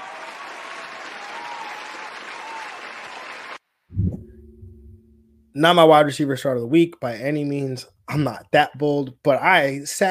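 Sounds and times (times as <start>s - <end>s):
round of applause: 0.0s - 3.6s
speech: 5.6s - 10.0s.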